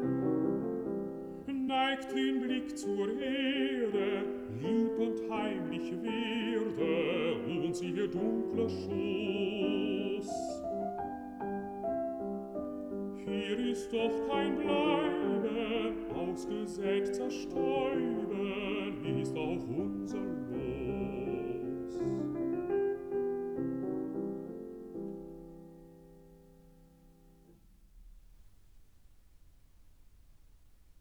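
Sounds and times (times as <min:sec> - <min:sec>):
piano: 0:00.0 - 0:30.9
person singing: 0:01.4 - 0:10.8, 0:13.2 - 0:22.5.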